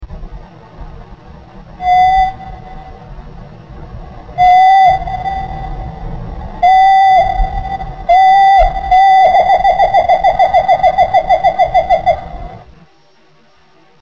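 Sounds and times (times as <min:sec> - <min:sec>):
wren song: 0:01.8 - 0:03.2, 0:04.3 - 0:14.0.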